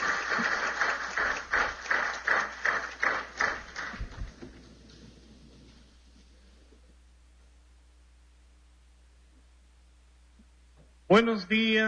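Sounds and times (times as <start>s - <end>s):
loud audience applause: 0.0s - 4.7s
speech: 11.1s - 11.8s.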